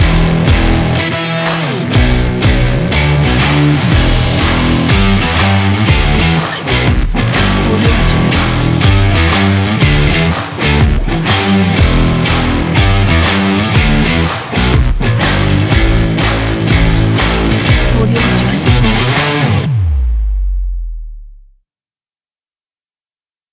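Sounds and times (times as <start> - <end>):
sport promo rock music: 0.0 - 20.3.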